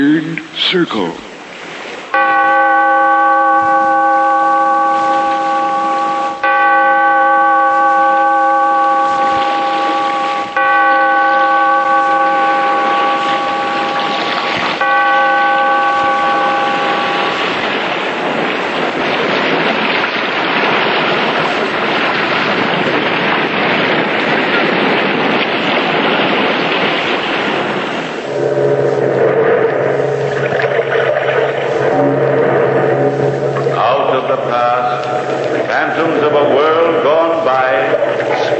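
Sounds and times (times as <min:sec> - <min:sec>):
speech: 0:00.0 - 0:01.3
steady rush of wind and surf-like noise: 0:00.0 - 0:38.5
bell tolling by the sea: 0:02.2 - 0:19.0, 0:28.2 - 0:38.5.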